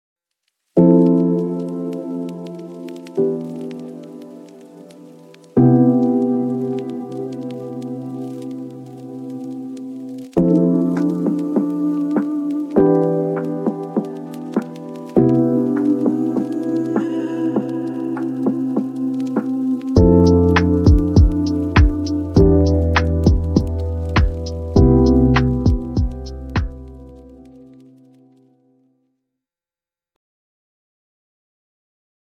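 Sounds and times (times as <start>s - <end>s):
AI lo-fi music: 0.8s - 27.8s.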